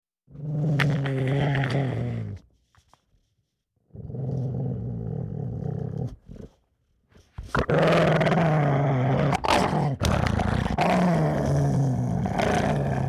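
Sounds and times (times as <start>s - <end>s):
dog giving a deep rough rumbling growl: 0.3s - 2.4s, 3.9s - 6.6s, 7.4s - 13.0s.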